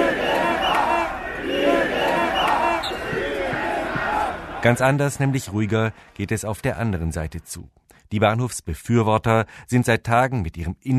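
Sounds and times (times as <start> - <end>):
protesters shouting: 0.0 - 5.5
speech: 4.6 - 10.9.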